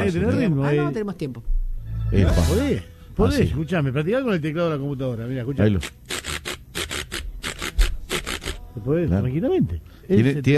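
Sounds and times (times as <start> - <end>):
speech: 0.1 - 6.1, 8.8 - 10.5
güiro being scraped: 5.8 - 8.7.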